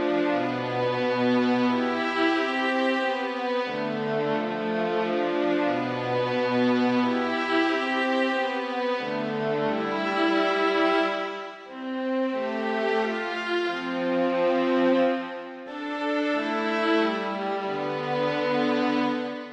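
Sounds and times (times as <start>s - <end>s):
concerto music: 0.0s - 19.5s.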